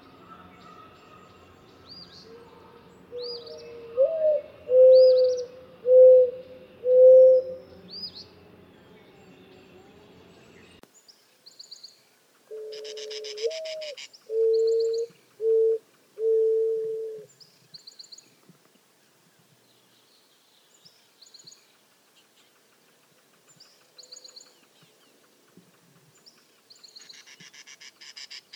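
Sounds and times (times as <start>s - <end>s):
mourning dove cooing: 2.3s - 7.8s, 12.5s - 17.3s.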